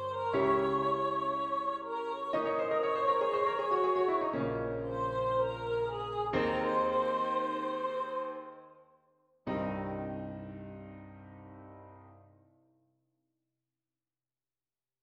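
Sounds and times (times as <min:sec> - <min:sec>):
piano playing: 0:00.0 - 0:08.6, 0:09.5 - 0:12.3.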